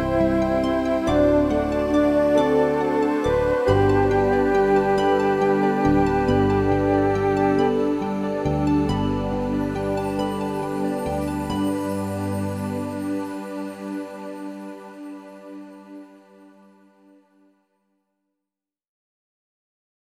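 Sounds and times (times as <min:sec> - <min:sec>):
instrumental hymn: 0:00.0 - 0:14.5.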